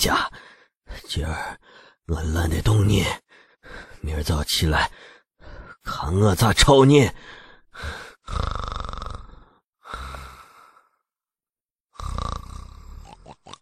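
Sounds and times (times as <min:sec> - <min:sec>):
speech: 0:00.0 - 0:05.1, 0:05.8 - 0:08.9
person imitating snoring: 0:08.2 - 0:10.2, 0:11.9 - 0:13.6.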